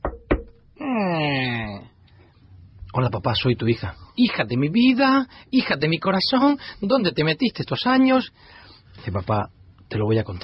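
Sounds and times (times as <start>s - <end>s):
knocking on a door in a small village in Chiapas: 0.0s - 0.6s
speech: 3.0s - 10.4s.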